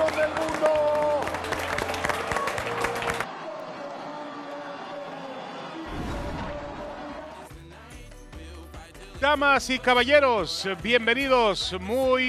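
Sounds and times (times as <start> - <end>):
crowd applause: 0.0 - 7.5
speech: 9.2 - 12.2.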